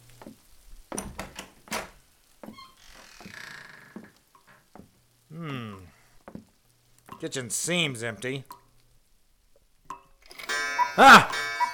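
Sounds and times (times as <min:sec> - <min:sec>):
speech: 0:07.2 - 0:08.6, 0:11.0 - 0:11.4
cuckoo clock calling: 0:10.3 - 0:11.7.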